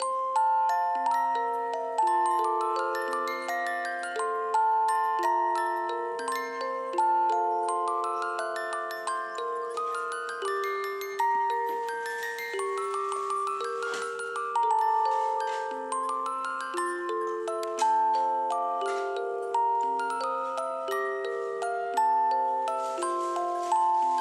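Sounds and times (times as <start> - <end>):
music box loop: 0.0 - 24.2.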